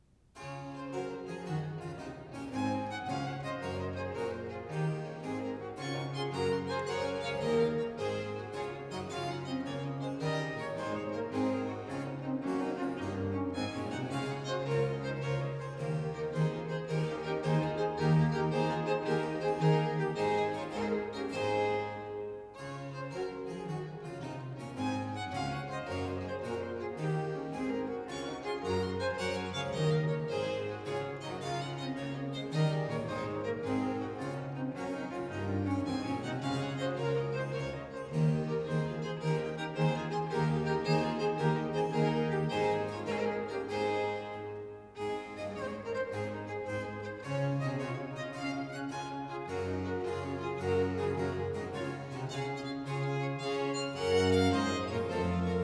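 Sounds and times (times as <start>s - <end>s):
three violins and continuo playing a gigue in D major: 0.0s - 55.6s.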